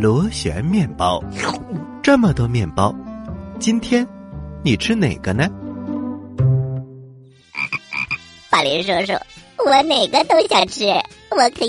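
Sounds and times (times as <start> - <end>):
speech: 0.0 - 5.6, 8.6 - 11.6
frog croaking: 7.5 - 8.3.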